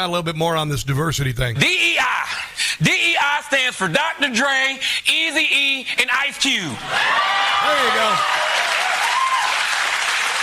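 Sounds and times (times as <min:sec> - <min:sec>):
speech: 0:00.0 - 0:08.4
audience cheering: 0:06.8 - 0:10.4.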